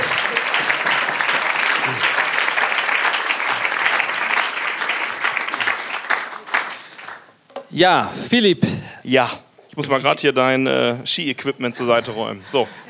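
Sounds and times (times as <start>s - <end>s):
crowd applauding: 0.0s - 7.3s
speech: 7.8s - 12.8s.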